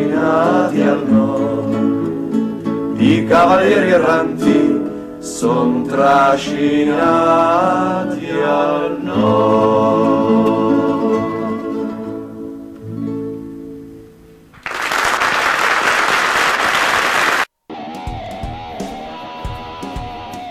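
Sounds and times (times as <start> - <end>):
music: 0.0 - 14.5, 17.7 - 20.4
speech: 3.0 - 10.8
applause: 14.6 - 17.5.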